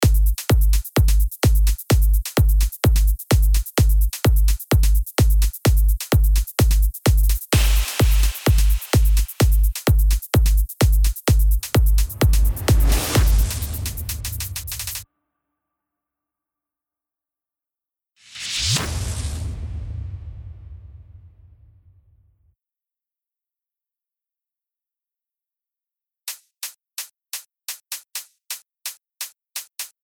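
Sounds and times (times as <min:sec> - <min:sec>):
drum effects: 0:00.0 - 0:15.0.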